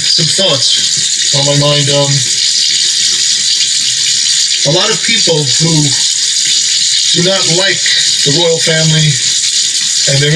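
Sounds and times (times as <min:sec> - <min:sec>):
water running while washing dishes: 0:00.0 - 0:10.3
speech: 0:00.2 - 0:02.9, 0:04.6 - 0:06.1, 0:07.1 - 0:09.3, 0:10.1 - 0:10.3.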